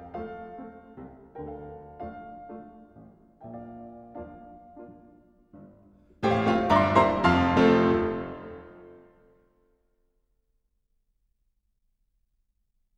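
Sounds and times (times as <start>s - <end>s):
piano dance piece in F: 0.0s - 9.3s.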